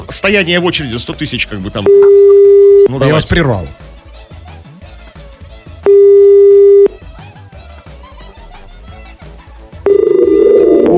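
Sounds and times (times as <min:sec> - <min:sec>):
speech: 0:00.1 - 0:03.9
telephone ringing tone: 0:01.8 - 0:02.9, 0:05.8 - 0:06.9, 0:09.8 - 0:10.9.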